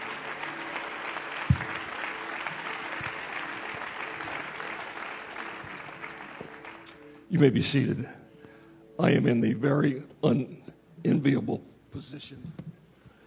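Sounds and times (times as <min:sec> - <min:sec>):
audience clapping hands: 0:00.0 - 0:07.1
speech: 0:07.3 - 0:08.2, 0:09.0 - 0:12.6.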